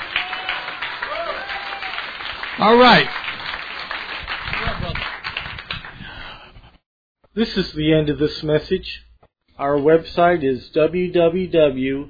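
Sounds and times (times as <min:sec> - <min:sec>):
audience clapping: 0:00.0 - 0:06.3
speech: 0:02.6 - 0:03.2, 0:07.4 - 0:12.0.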